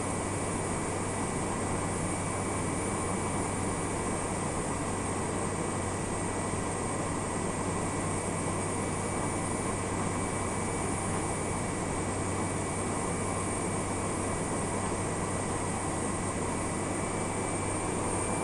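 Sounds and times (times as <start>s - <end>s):
Beechcraft King Air 350 left engine idling low to high rpm: 0.0s - 18.4s.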